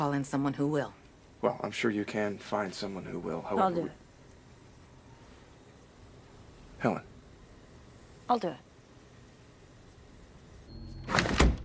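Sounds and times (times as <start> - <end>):
speech: 0.0 - 4.0, 6.8 - 7.1, 8.3 - 8.6
storeroom door closing: 10.8 - 11.6.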